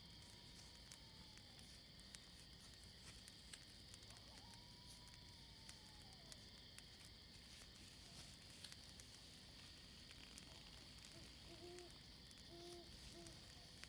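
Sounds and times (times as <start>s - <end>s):
campfire crackling: 0.0s - 13.8s
insect drone: 0.0s - 13.8s
hooting calls: 10.5s - 13.8s.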